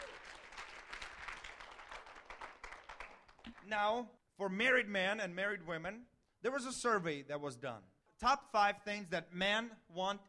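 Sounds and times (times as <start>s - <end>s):
people clapping: 0.0s - 4.0s
speech: 3.7s - 10.2s.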